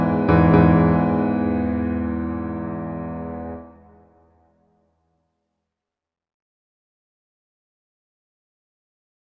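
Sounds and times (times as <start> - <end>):
slow classical piece: 0.0 - 4.6.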